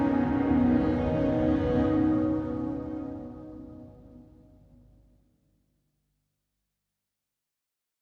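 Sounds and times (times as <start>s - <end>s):
soft synth pads: 0.0s - 4.8s.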